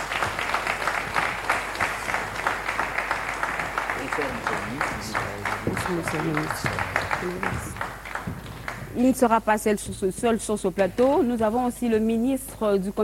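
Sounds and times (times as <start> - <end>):
audience applause: 0.0 - 9.0
voices murmuring and calling out: 4.0 - 7.7
speech: 4.2 - 7.9, 9.0 - 13.0.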